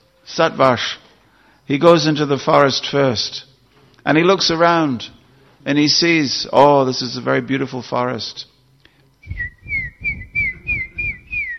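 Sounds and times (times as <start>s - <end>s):
speech: 0.3s - 1.0s, 1.7s - 8.5s, 9.3s - 9.5s
person whistling an imitation of a cuckoo's call: 9.2s - 11.5s
soft low thumps: 9.2s - 11.5s.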